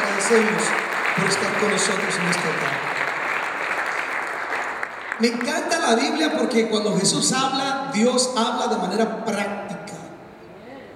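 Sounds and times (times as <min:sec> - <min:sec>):
audience applause: 0:00.0 - 0:05.8
speech: 0:00.3 - 0:03.0, 0:05.2 - 0:09.5.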